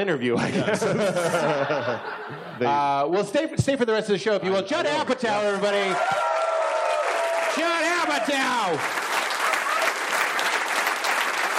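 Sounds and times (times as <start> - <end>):
speech: 0.0 - 6.3, 7.6 - 9.0
laughter: 0.3 - 2.9, 9.3 - 10.0
live audience applause: 5.7 - 11.5.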